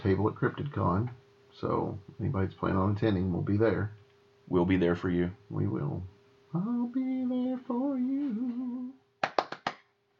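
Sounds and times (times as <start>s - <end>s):
speech: 0.0s - 9.0s
faint steady hum: 0.0s - 10.1s
sharp hand claps: 9.2s - 9.9s.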